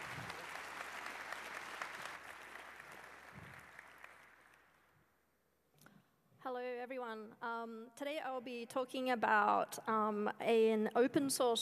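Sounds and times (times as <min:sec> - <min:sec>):
audience applause: 0:00.0 - 0:04.8
speech: 0:06.5 - 0:11.6.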